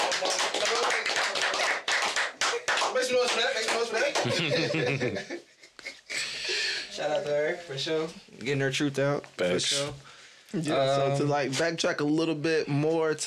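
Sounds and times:
clapping: 0:00.0 - 0:04.4
speech: 0:03.8 - 0:05.4, 0:07.0 - 0:13.2
laughter: 0:03.8 - 0:06.4.

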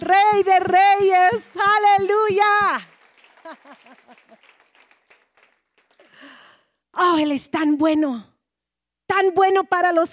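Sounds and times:
speech: 0:00.0 - 0:02.5, 0:03.6 - 0:04.6, 0:07.0 - 0:08.3, 0:09.1 - 0:10.1
hands clapping: 0:00.0 - 0:06.4
laughter: 0:03.3 - 0:04.6.

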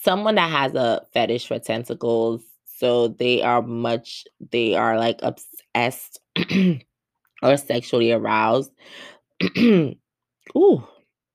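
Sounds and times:
speech: 0:00.0 - 0:10.9
throat clearing from someone with a tickle in the throat: 0:09.4 - 0:10.0.

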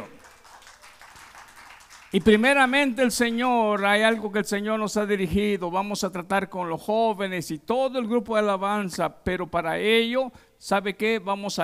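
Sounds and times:
applause from audience: 0:00.0 - 0:02.6
speech: 0:02.1 - 0:11.6.

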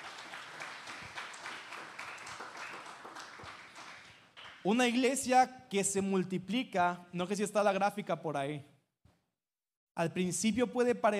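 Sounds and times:
audience applause: 0:00.0 - 0:04.7
speech: 0:04.6 - 0:08.7, 0:10.0 - 0:11.1.

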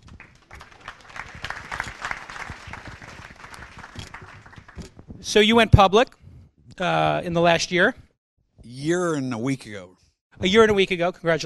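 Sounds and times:
crowd applauding: 0:00.0 - 0:04.9
speech: 0:05.3 - 0:06.2, 0:06.8 - 0:08.0, 0:08.7 - 0:11.4.

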